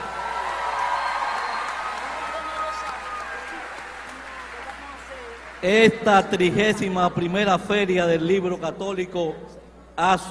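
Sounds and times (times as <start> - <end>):
faint cheers: 0.0 - 5.7
audience applause: 0.0 - 6.6
speech: 5.6 - 10.2.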